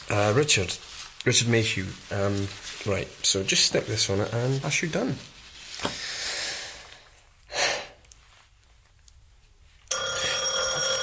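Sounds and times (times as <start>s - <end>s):
speech: 0.1s - 6.0s
doorbell ringing: 9.9s - 11.0s.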